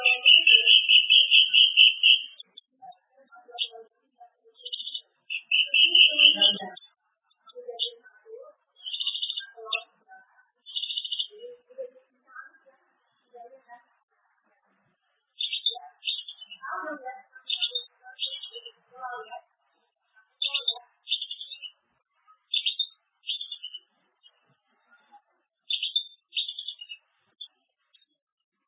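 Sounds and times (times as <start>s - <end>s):
bird song of rapid buzzy trilled bursts and thin high whistled notes: 0.0s - 3.8s, 4.5s - 9.9s, 10.6s - 11.5s, 15.4s - 19.4s, 20.4s - 28.2s.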